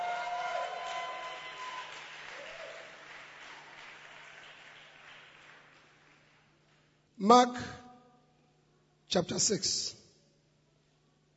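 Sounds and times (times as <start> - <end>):
audience clapping: 0.0 - 7.0
speech: 7.2 - 7.8, 9.1 - 10.0.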